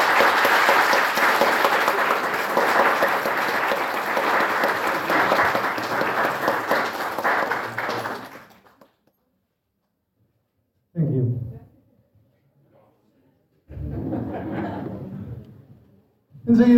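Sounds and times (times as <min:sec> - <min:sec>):
audience applause: 0:00.0 - 0:09.0
laughter: 0:13.7 - 0:15.6.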